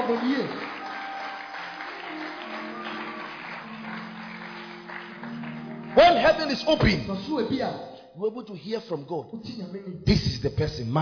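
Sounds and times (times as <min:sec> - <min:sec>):
audience clapping: 0:00.0 - 0:07.7
speech: 0:00.1 - 0:00.8, 0:06.0 - 0:10.9.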